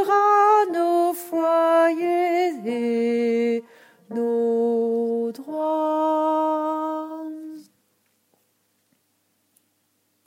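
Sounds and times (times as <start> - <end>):
altos singing a national anthem: 0.0 - 7.7.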